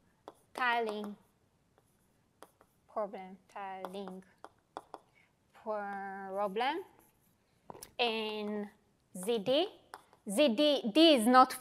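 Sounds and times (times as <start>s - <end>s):
pen or marker scratching and tapping during a mathematics lecture: 0.2s - 2.8s, 3.6s - 5.1s, 5.7s - 10.3s
speech: 0.6s - 1.2s, 3.0s - 4.4s, 5.6s - 7.0s, 7.7s - 11.6s.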